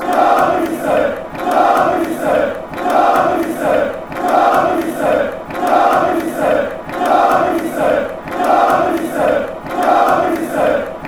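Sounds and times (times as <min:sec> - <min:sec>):
chant: 0:00.0 - 0:11.0.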